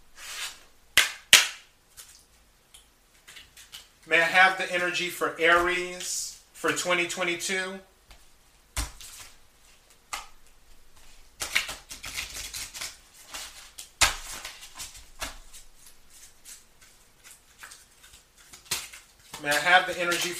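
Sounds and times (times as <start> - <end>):
oracle cards being shuffled and pulled from the deck: 3.2 - 4.0, 8.8 - 10.3, 11.0 - 20.3
speech: 4.1 - 7.9, 19.4 - 20.3.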